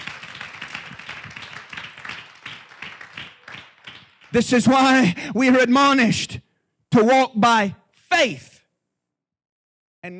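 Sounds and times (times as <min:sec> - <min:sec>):
congregation clapping hands during a church worship service: 0:00.0 - 0:05.2
speech: 0:04.3 - 0:06.3, 0:07.0 - 0:08.5.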